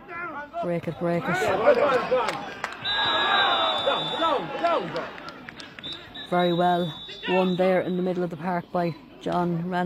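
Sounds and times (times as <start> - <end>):
speech: 0.6 - 5.2, 6.3 - 9.8
spectators shouting at the referee: 1.2 - 6.2.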